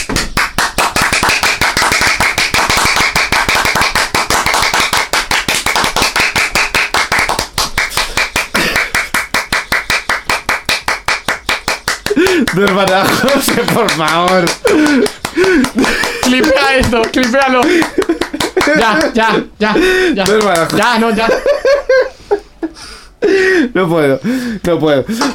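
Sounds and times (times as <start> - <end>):
applause: 0.1 - 19.1, 20.2 - 21.0
laughter: 12.1 - 23.6
speech: 12.5 - 22.1, 23.4 - 25.3.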